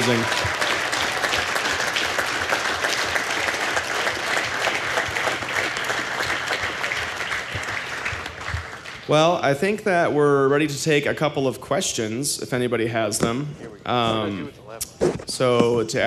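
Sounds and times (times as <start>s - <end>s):
speech: 0.0s - 0.6s, 9.1s - 16.0s
applause: 0.0s - 9.8s.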